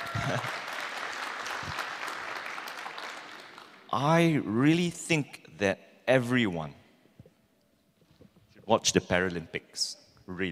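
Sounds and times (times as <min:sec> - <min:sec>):
audience applause: 0:00.0 - 0:03.9
speech: 0:00.3 - 0:00.6, 0:03.9 - 0:06.8, 0:08.7 - 0:10.5.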